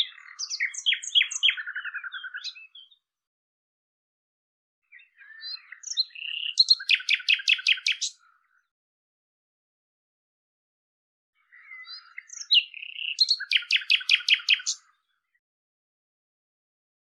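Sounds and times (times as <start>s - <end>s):
Common nightingale song with chirps and rattling series: 0.0s - 3.0s, 4.9s - 8.6s, 11.4s - 15.0s.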